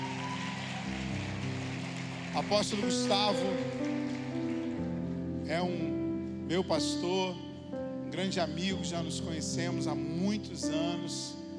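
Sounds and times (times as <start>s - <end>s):
audience applause: 0.0s - 5.2s
speech: 2.4s - 4.2s, 5.5s - 7.4s, 8.1s - 11.4s.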